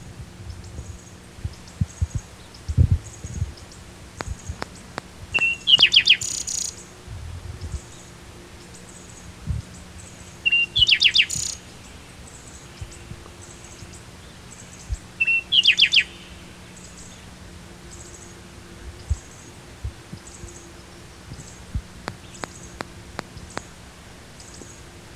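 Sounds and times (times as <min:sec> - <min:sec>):
soft high twitters: 0:00.5 - 0:24.9
bird whistles and chirps: 0:05.3 - 0:06.9, 0:10.4 - 0:11.6, 0:15.2 - 0:16.3.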